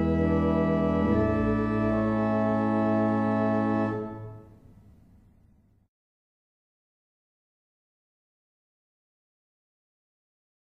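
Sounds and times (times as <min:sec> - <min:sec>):
barrel organs playing a hymn: 0:00.0 - 0:04.6.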